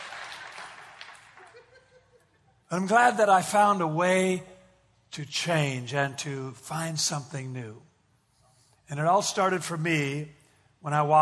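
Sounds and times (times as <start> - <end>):
crowd clapping: 0.0 - 1.7
laughter: 1.3 - 2.7
speech: 2.7 - 4.5, 5.1 - 7.9, 8.9 - 11.2.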